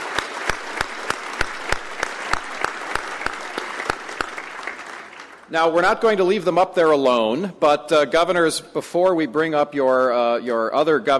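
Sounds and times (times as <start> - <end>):
audience applause: 0.0 - 6.2
speech: 5.5 - 11.1.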